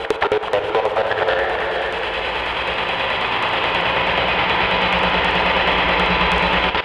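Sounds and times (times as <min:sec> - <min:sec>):
techno vocals at 140 BPM: 0:00.0 - 0:06.0.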